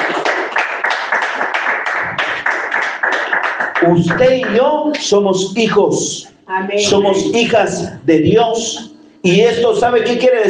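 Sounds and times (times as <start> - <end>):
audience applause: 0.0 - 4.7
speech: 3.8 - 10.4.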